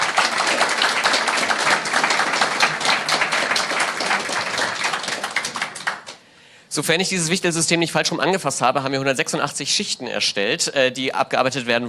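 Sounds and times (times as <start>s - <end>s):
audience applause: 0.0s - 6.2s
speech: 6.8s - 11.8s.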